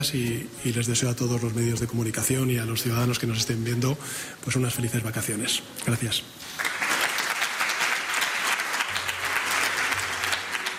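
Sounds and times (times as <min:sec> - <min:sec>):
speech: 0:00.0 - 0:06.7
ministers applauding: 0:06.4 - 0:10.7.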